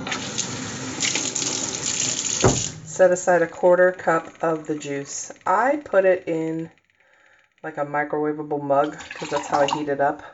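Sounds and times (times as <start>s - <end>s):
water running from a kitchen tap: 0.0s - 3.0s, 8.9s - 9.8s
speech: 2.4s - 6.8s, 7.6s - 10.3s.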